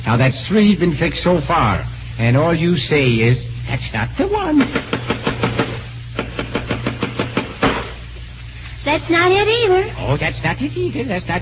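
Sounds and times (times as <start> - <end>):
speech: 0.1 - 5.1, 8.9 - 11.4
hammer pounding nails into moldings: 4.6 - 8.0.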